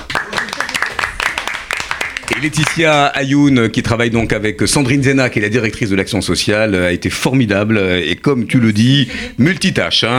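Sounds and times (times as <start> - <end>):
audience applause: 0.0 - 2.8
speech: 2.3 - 10.1.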